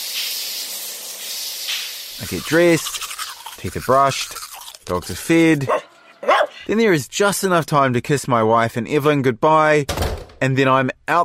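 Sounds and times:
shower water spraying: 0.0 - 5.6
speech: 2.2 - 5.9, 6.7 - 11.2.

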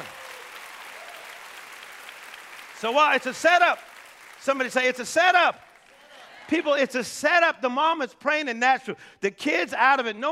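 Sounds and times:
audience clapping hands: 0.0 - 6.8
speech: 2.8 - 5.6, 6.5 - 10.2.

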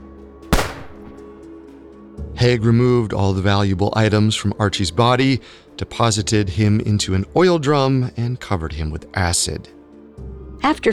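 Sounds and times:
gunshot: 0.6 - 1.3
speech: 2.4 - 9.8, 10.6 - 10.9.

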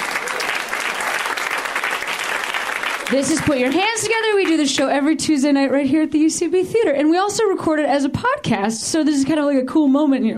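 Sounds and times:
audience applause: 0.0 - 4.8
speech: 3.1 - 10.3.

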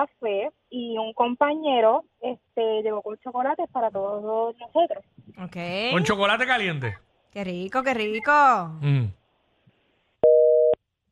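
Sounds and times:
speech: 0.0 - 9.2
telephone busy signal after dropped call: 10.2 - 10.8.

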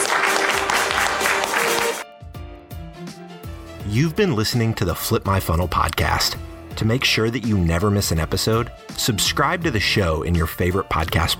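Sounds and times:
audience applause: 0.0 - 2.0
speech: 3.9 - 11.3.

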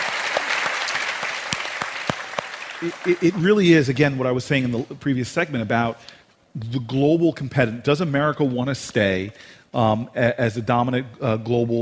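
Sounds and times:
audience applause: 0.0 - 3.6
speech: 2.8 - 11.8.

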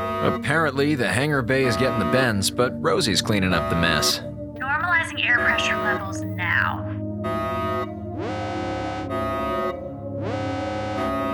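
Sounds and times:
speech: 0.2 - 4.4, 5.1 - 6.9
alarm: 4.6 - 11.3.

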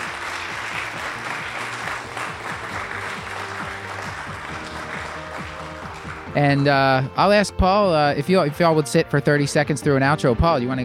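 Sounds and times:
audience applause: 0.0 - 6.7
speech: 6.4 - 10.8.

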